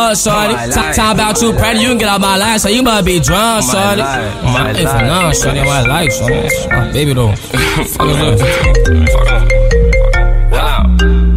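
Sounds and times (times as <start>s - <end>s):
speech: 0.0s - 10.0s
laughter: 0.2s - 2.2s, 3.3s - 9.5s
phone ringing from an unknown number with electronic ringtone: 0.8s - 11.3s.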